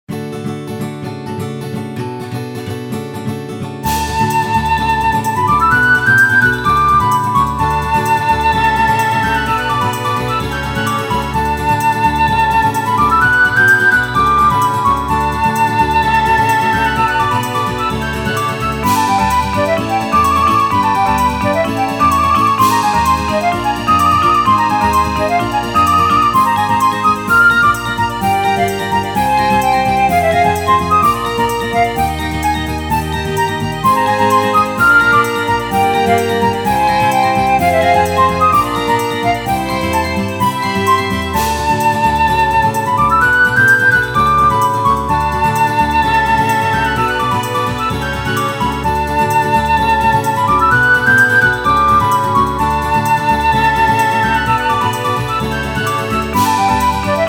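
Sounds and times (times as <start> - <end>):
guitar playing: 0.1 - 57.2.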